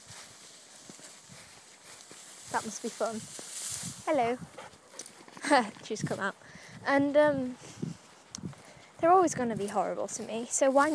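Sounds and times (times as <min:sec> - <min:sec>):
horse hooves clip-clopping as a horse goes into corn: 0:00.0 - 0:06.2
speech: 0:02.5 - 0:03.5, 0:04.1 - 0:04.6, 0:05.5 - 0:07.7, 0:09.0 - 0:10.9.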